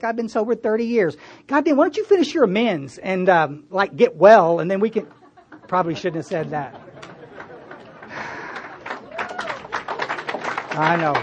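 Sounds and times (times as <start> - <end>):
speech: 0.0 - 6.9, 10.8 - 11.2
laughter: 4.9 - 11.2
audience applause: 6.3 - 11.2.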